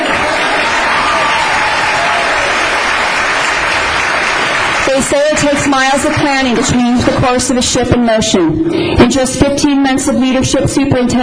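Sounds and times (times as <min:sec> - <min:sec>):
audience applause: 0:00.0 - 0:07.5
speech: 0:05.0 - 0:11.2.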